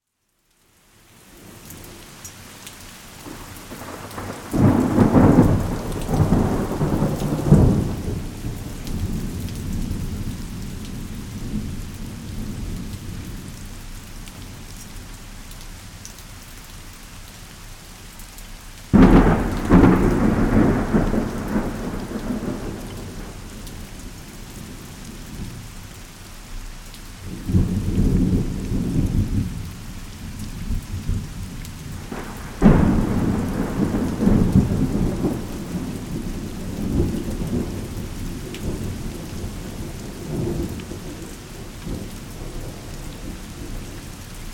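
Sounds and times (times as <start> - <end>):
thunderstorm: 3.7 - 13.6, 18.9 - 25.7, 27.2 - 44.3.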